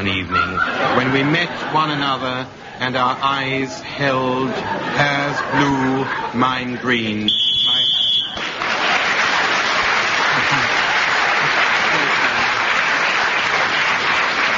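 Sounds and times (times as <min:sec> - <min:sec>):
speech: 0:00.0 - 0:07.5
laughter: 0:00.0 - 0:08.1, 0:10.0 - 0:12.8
referee whistle blast ending the round: 0:07.3 - 0:08.4
crowd applauding: 0:07.7 - 0:14.5.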